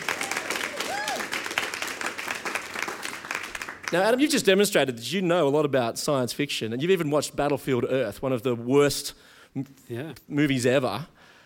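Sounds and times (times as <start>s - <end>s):
applause: 0.0s - 4.2s
speech: 3.9s - 11.2s.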